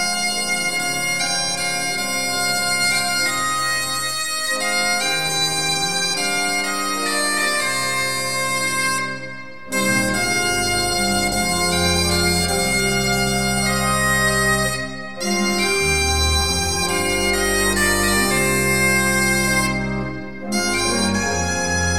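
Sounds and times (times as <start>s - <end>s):
organs playing: 0.0s - 21.9s.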